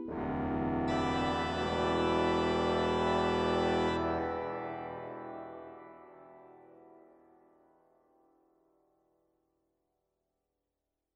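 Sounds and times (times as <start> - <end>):
organ improvisation: 0.1 - 6.5.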